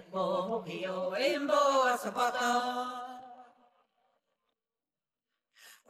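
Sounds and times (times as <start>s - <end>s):
traditional celtic song vocals: 0.0s - 3.3s.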